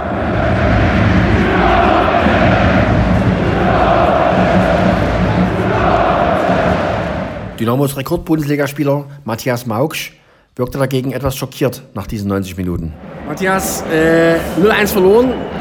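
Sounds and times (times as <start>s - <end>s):
stadium fans cheering and shouting after final whistle: 0.0s - 7.6s, 13.0s - 15.5s
speech: 7.6s - 15.5s.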